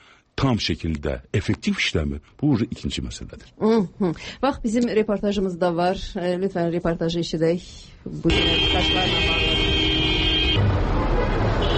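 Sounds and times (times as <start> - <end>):
speech: 0.4 - 9.4
dense street traffic noise: 8.0 - 11.7
car horns honking in a traffic jam on a street: 8.3 - 11.7.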